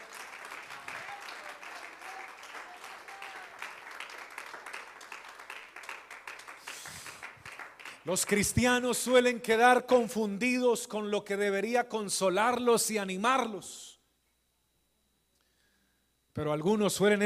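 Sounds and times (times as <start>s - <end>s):
faint voices and cheers: 0.0s - 3.8s
audience applauding: 0.0s - 8.4s
speech: 8.0s - 13.9s, 16.4s - 17.2s.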